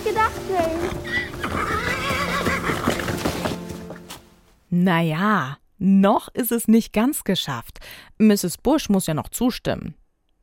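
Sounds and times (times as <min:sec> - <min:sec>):
hoof knocks: 0:00.0 - 0:04.5
speech: 0:00.2 - 0:01.2, 0:04.8 - 0:10.4
worn-out old horse whinnying: 0:01.0 - 0:03.6.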